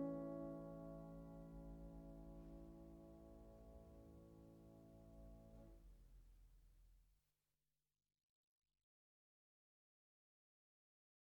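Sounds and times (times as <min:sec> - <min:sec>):
piano etude in A minor: 0:00.0 - 0:05.5.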